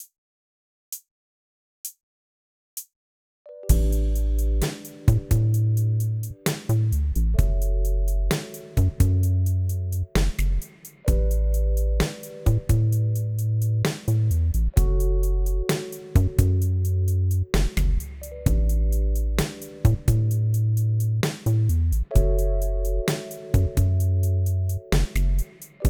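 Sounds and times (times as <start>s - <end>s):
piano: 3.5s - 25.8s.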